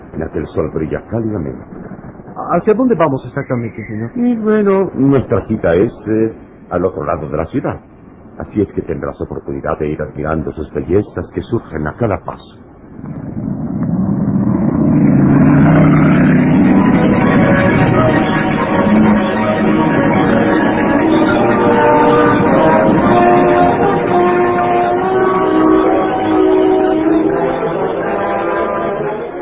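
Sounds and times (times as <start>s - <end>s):
speech: 0.2s - 13.4s
sports car speeding through city traffic: 13.0s - 29.3s.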